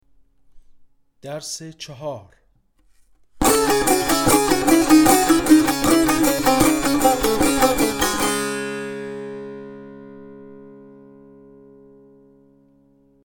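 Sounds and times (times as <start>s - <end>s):
tanbur practice: 3.4s - 11.1s.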